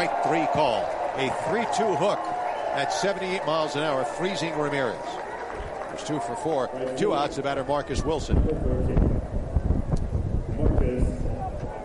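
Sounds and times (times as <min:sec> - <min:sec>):
speech: 0:00.0 - 0:05.2, 0:05.9 - 0:09.0
faint crowd murmur: 0:00.0 - 0:11.8
wind howling: 0:07.2 - 0:11.8.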